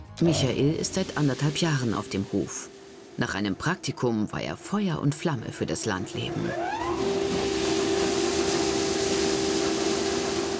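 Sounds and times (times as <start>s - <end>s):
speech: 0.2s - 7.2s
grain cleaning machine running: 0.5s - 10.5s.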